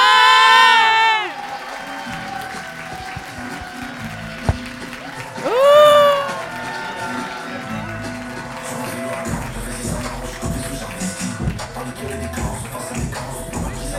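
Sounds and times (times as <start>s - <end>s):
audience cheering: 0.0s - 9.6s
audience applause: 0.0s - 11.5s.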